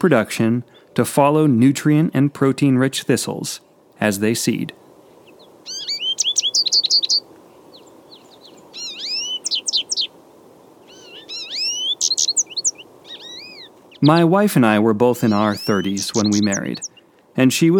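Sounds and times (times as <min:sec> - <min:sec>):
speech: 0:00.0 - 0:04.8, 0:14.0 - 0:17.7
American Goldfinch song: 0:05.2 - 0:10.2, 0:10.8 - 0:17.2.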